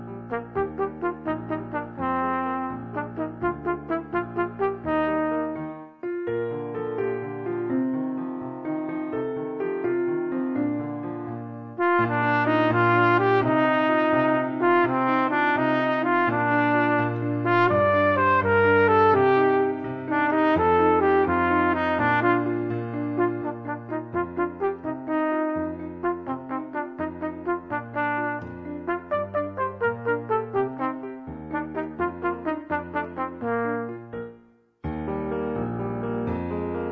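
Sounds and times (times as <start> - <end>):
musical accompaniment: 0.0 - 10.8, 11.7 - 36.9
trumpet: 0.2 - 5.9, 11.8 - 34.4.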